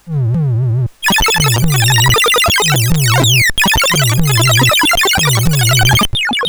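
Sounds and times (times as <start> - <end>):
SID CSG8580R5 chip music: 0.2 - 6.4.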